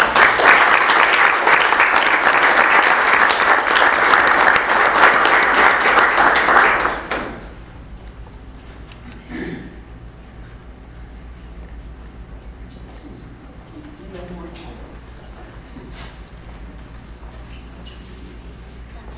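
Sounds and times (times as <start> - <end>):
round of applause for the winners: 0.0 - 7.6.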